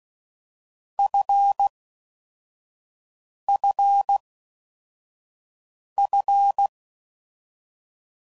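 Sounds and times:
morse code beeps at 10 WPM: 1.0 - 1.7, 3.6 - 4.2, 6.0 - 6.7.

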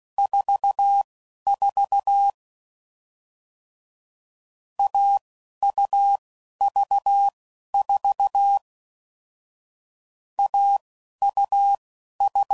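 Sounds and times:
CW Morse code groups at 10 WPM: 0.2 - 2.4, 4.8 - 8.6, 10.4 - 12.5.

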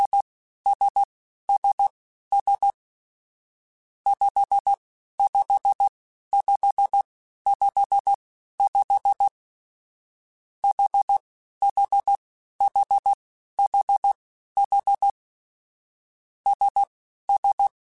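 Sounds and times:
morse code beeps: 0.0 - 2.8, 4.1 - 9.3, 10.6 - 15.2, 16.5 - 17.7.

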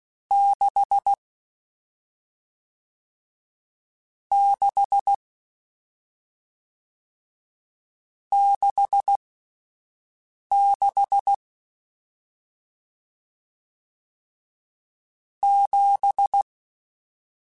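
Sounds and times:
Morse code CW code groups: 0.3 - 1.2, 4.3 - 5.2, 8.3 - 9.2, 10.5 - 11.4, 15.4 - 16.4.

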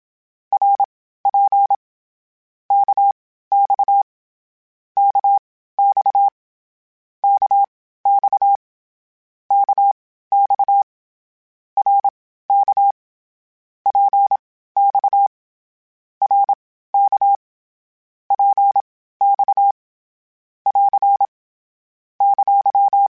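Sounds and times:
CW Morse code groups in short runs: 0.5 - 1.8, 2.7 - 4.0, 5.0 - 6.3, 7.2 - 8.6, 9.5 - 10.9, 11.8 - 13.0, 13.9 - 15.3, 16.2 - 17.4, 18.3 - 19.8, 20.7 - 21.3, 22.2 - 23.1.

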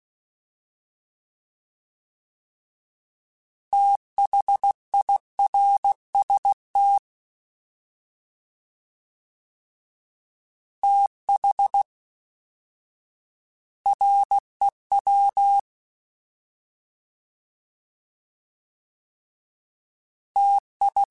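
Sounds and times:
fast CW Morse code groups: 3.7 - 7.0, 10.8 - 11.8, 13.9 - 15.6, 20.4 - 21.1.

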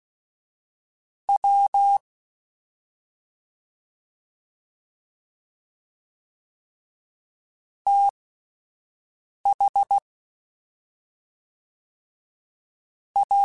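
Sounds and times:
fast CW Morse code groups: 1.4 - 2.0, 7.9 - 8.1, 13.2 - 13.4.

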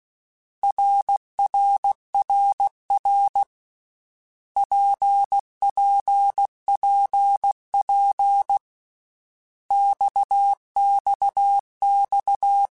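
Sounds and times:
Morse code CW basic letter groups: 0.6 - 3.5, 4.6 - 8.6, 9.7 - 12.7.

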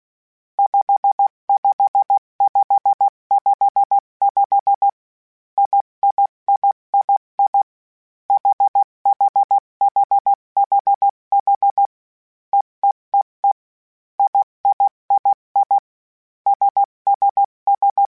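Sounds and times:
Morse code CW code groups of basic letters: 0.6 - 5.0, 5.6 - 7.6, 8.3 - 11.9, 14.2 - 15.8, 16.5 - 18.1.

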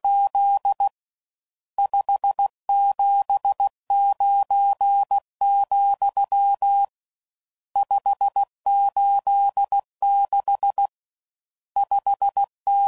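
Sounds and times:
Morse code CW code groups at 15 WPM: 0.0 - 0.9, 1.8 - 6.9, 7.8 - 10.9, 11.8 - 12.8.

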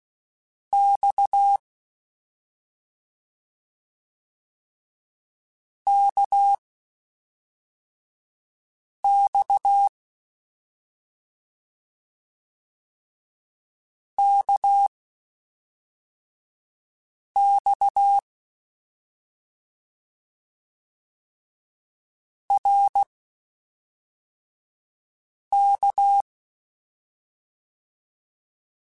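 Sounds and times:
CW Morse code groups in mixed short runs: 5.9 - 6.6, 9.1 - 9.9, 14.2 - 14.9, 17.4 - 18.2, 22.5 - 23.1, 25.6 - 26.2.

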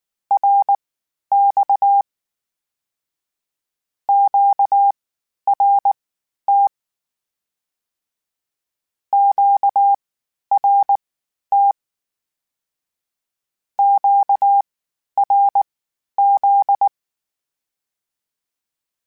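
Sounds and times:
Morse code CW code group calls: 0.4 - 2.0, 4.1 - 4.9, 5.5 - 6.7, 9.2 - 10.0, 10.6 - 11.8, 13.8 - 14.6, 15.2 - 15.6, 16.2 - 16.9.

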